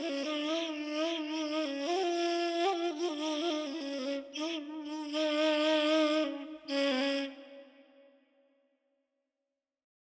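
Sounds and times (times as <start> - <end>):
ney flute melody in Persian Afshari mode: 0.0 - 7.7.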